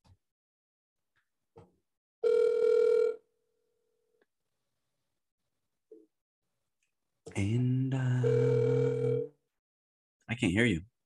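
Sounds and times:
phone dial tone: 2.2s - 3.2s, 8.2s - 9.3s
speech: 7.4s - 8.5s, 10.4s - 10.9s.

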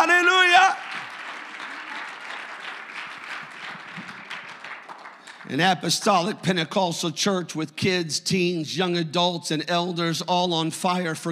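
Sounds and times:
audience clapping: 0.0s - 6.8s
speech: 5.5s - 11.3s.

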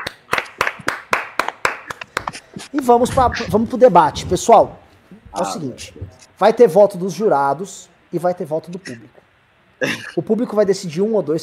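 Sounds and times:
hand clapping: 0.0s - 2.9s
speech: 2.6s - 9.2s, 9.8s - 11.4s.

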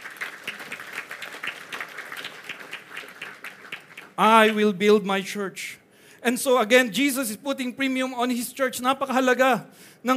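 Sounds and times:
audience applauding: 0.0s - 4.7s
speech: 4.2s - 10.1s.

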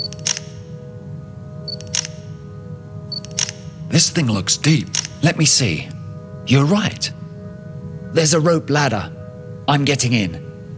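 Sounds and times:
camera shutter click: 0.0s - 0.6s, 1.7s - 2.2s, 3.2s - 3.6s, 4.9s - 5.2s
steady low hum: 0.0s - 10.7s
speech: 3.9s - 7.2s, 8.1s - 10.5s.

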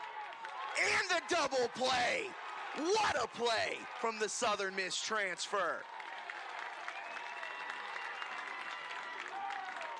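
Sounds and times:
ballgame crowd cheering and applauding: 0.0s - 9.9s
speech: 0.8s - 6.0s
whoops: 6.0s - 9.9s.

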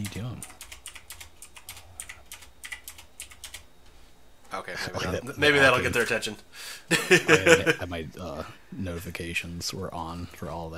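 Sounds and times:
typing a message on a keyboard: 0.0s - 3.7s
low hum: 0.0s - 10.7s
speech: 4.6s - 10.7s
laughter: 6.9s - 7.9s.

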